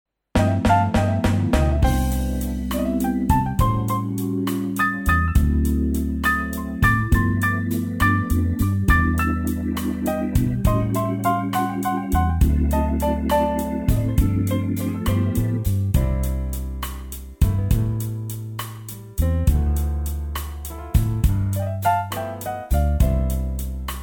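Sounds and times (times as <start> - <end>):
blues music: 0.4 - 24.0.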